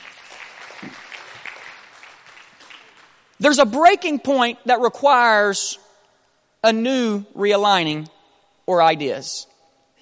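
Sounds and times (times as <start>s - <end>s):
seated audience clapping hands: 0.0s - 3.4s
speech: 3.4s - 5.8s, 6.6s - 9.5s.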